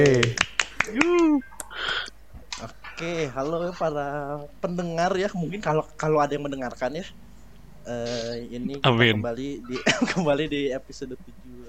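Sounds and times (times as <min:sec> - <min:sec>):
crowd hand clapping: 0:00.0 - 0:01.4
speech: 0:00.0 - 0:01.5, 0:03.0 - 0:11.6
laughter: 0:09.6 - 0:10.4.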